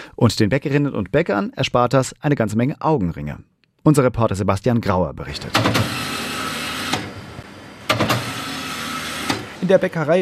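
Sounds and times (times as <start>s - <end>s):
speech: 0.2s - 6.2s, 9.6s - 10.1s
bakery machinery clunks: 5.4s - 9.6s
bakery conveyor machine hissing: 5.4s - 9.9s.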